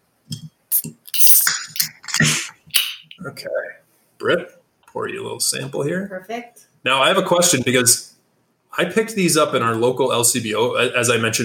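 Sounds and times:
beer container cracked open with pop and fizzy hiss: 0:00.7 - 0:03.2
speech: 0:04.3 - 0:08.1, 0:08.8 - 0:11.4.

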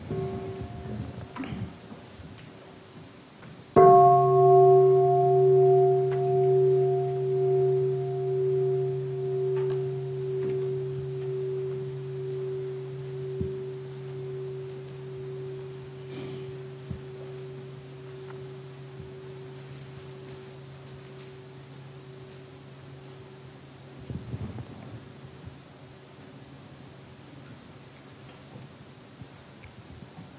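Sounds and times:
mindfulness bell being struck: 0:00.1 - 0:01.7, 0:03.8 - 0:24.0.

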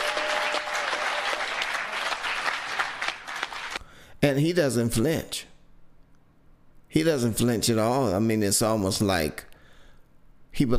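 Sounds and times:
crowd applauding: 0:00.0 - 0:03.8
speech: 0:04.2 - 0:05.5, 0:06.9 - 0:09.5, 0:10.6 - 0:10.7.

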